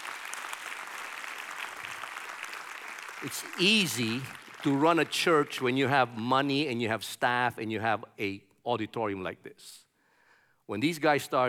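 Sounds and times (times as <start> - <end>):
church audience applause: 0.0 - 6.0
speech: 3.2 - 9.9, 10.7 - 11.4.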